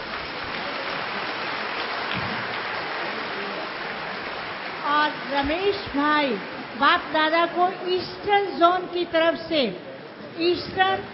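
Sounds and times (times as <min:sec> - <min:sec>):
audience applause: 0:00.0 - 0:06.8
speech: 0:05.0 - 0:11.1.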